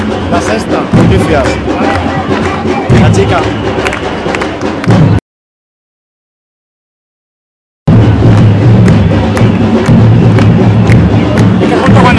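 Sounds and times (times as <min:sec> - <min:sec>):
batucada drumming: 0:00.0 - 0:05.2, 0:07.9 - 0:12.1.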